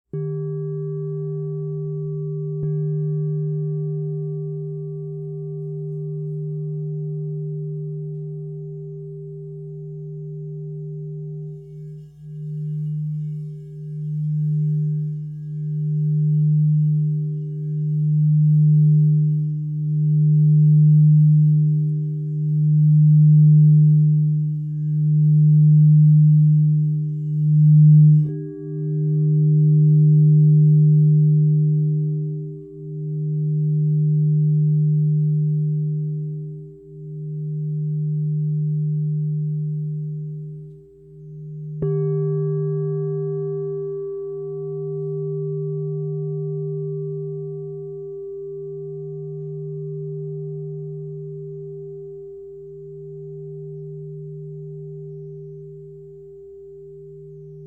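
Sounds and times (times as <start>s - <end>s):
crystal singing bowls ringing: 0.0s - 57.6s.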